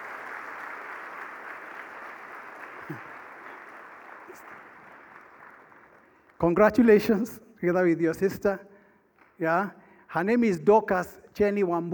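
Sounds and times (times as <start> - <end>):
audience clapping: 0.0 - 6.6
speech: 2.9 - 3.1, 6.4 - 8.7, 9.4 - 11.9.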